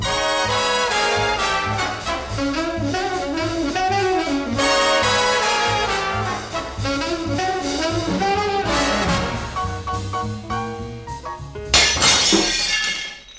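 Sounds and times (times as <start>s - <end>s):
upbeat band music: 0.0s - 11.8s
window pane shattering: 11.7s - 13.3s.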